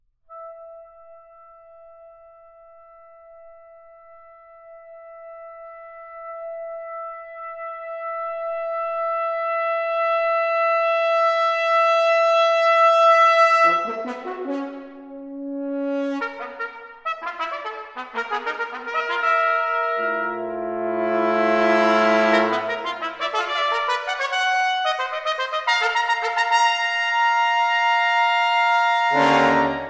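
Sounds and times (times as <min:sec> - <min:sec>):
brass quintet playing canonic fanfares: 0:07.6 - 0:29.8.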